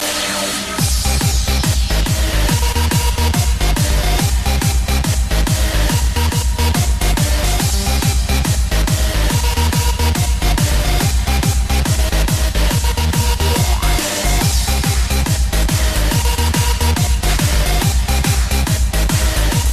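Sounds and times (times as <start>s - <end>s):
Tecktonik electro dance music: 0.0s - 19.7s.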